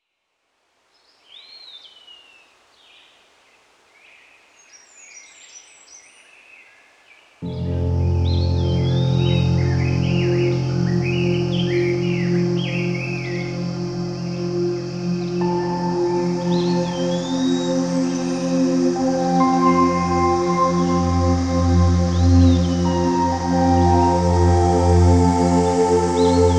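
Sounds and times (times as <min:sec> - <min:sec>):
relaxation meditation new age piano music: 0:07.4 - 0:26.5.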